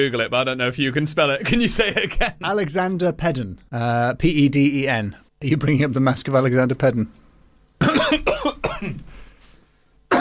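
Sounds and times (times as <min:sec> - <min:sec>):
speech: 0:00.0 - 0:07.2, 0:07.8 - 0:09.1
person coughing after choking on water: 0:07.8 - 0:09.1.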